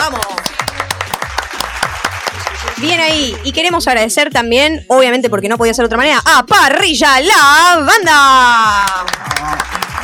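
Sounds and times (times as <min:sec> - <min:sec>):
loud applause: 0:00.0 - 0:03.5, 0:08.8 - 0:10.0
speech: 0:02.8 - 0:09.7.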